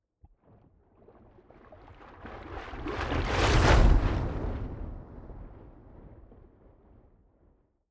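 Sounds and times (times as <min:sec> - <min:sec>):
big waves splashing: 0:02.8 - 0:05.4.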